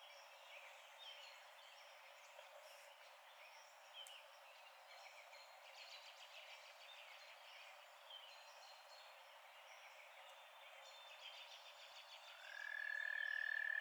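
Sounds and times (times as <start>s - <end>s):
night frog chorus holding a steady high tone: 12.3s - 13.7s.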